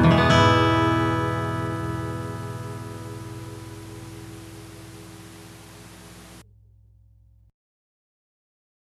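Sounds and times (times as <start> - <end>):
steel guitar: 0.0 - 7.5.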